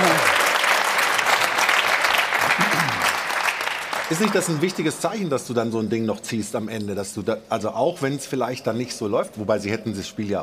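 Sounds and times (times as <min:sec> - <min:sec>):
Bayern football fans clapping: 0:00.0 - 0:05.4
speech: 0:04.1 - 0:10.4.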